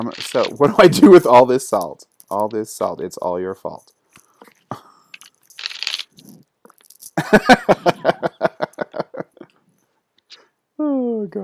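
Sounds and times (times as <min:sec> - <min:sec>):
tarot cards being shuffled: 0:00.0 - 0:01.1, 0:04.1 - 0:07.3
speech: 0:00.0 - 0:04.0, 0:07.2 - 0:08.2, 0:11.2 - 0:11.4
laughter: 0:07.2 - 0:09.5.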